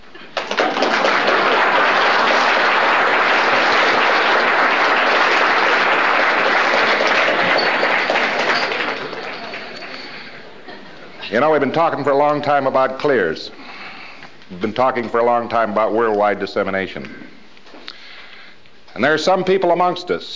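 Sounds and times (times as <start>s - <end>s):
audience applause: 0.4s - 10.4s
speech: 11.3s - 13.6s, 14.5s - 17.2s, 19.0s - 20.3s.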